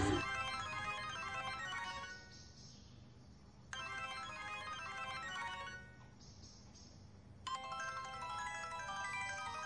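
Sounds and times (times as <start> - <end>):
mobile phone ringtone: 0.2 - 2.3, 3.7 - 6.0, 7.5 - 9.6.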